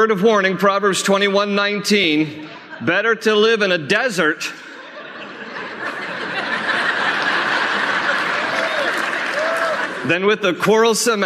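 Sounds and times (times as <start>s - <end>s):
speech: 0.0s - 4.7s, 10.1s - 11.2s
sermon audience chuckling and laughing: 4.5s - 10.1s
sermon audience clapping: 6.6s - 10.1s.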